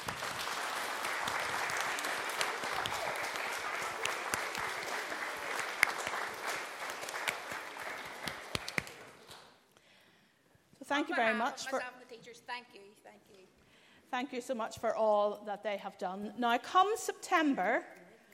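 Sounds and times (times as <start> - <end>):
congregation giving a big round of applause: 0.0 - 9.6
speech: 10.9 - 13.5, 14.1 - 18.0.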